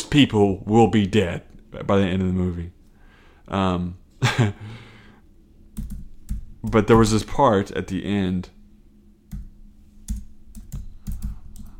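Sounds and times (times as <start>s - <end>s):
speech: 0.1s - 2.8s, 3.5s - 4.8s, 6.6s - 8.6s
typing on a computer keyboard: 5.8s - 6.8s, 10.1s - 11.7s.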